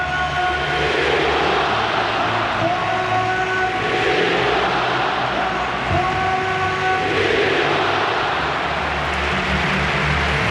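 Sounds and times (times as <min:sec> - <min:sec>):
stadium crowd applauding and cheering: 0:00.0 - 0:10.4.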